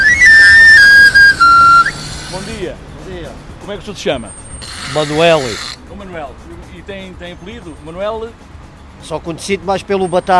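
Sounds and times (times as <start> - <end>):
knife grinder's plastic pan flute: 0.0 - 2.5
speech: 3.7 - 10.3.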